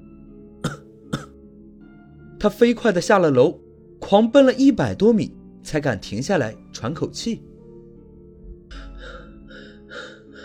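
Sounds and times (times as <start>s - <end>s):
soft coughs: 0.6s - 1.4s
speech: 2.4s - 7.5s.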